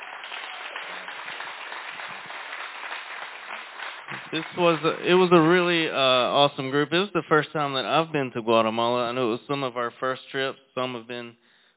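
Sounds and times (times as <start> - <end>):
audience clapping: 0.0 - 5.6
speech: 4.3 - 11.5.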